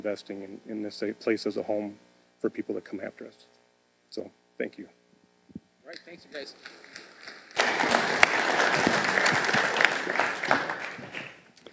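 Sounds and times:
speech: 0.0 - 5.0, 5.9 - 6.8
audience clapping: 6.0 - 11.7.

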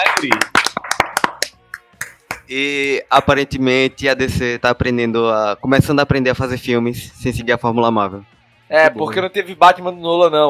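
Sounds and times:
speech: 0.0 - 0.6, 2.5 - 10.4
audience clapping: 0.0 - 3.0.

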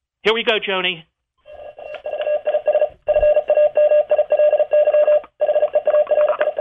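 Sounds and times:
speech: 0.2 - 1.1
Morse code tones: 1.6 - 6.5.

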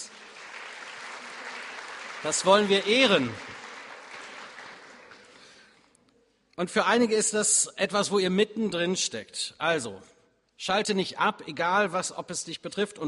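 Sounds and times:
audience applause: 0.0 - 5.7
speech: 2.2 - 3.5, 6.6 - 13.0.

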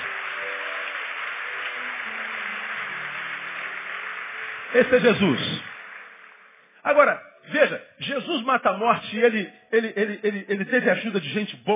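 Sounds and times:
audience applauding loudly: 0.0 - 7.1
speech: 4.7 - 5.7, 6.8 - 11.7.

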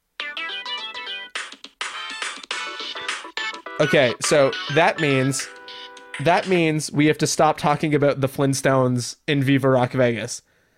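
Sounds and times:
phone timer alarm electronic melody: 0.2 - 1.3, 1.9 - 6.5
speech: 3.8 - 5.6, 6.2 - 10.5.

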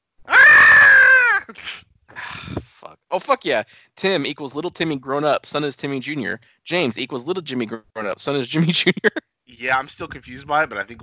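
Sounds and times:
person imitating a scream: 0.3 - 1.6
breathy exhale: 1.6 - 2.8
speech: 3.2 - 11.0.

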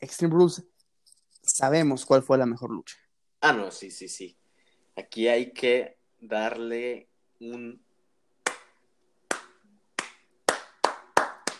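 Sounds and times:
speech: 0.0 - 0.7, 1.6 - 4.4, 5.0 - 7.8
hand clapping: 8.4 - 11.5.

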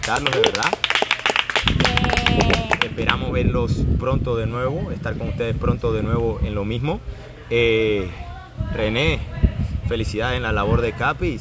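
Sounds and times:
applause: 0.0 - 3.3
speech: 0.1 - 0.9, 1.9 - 11.4.

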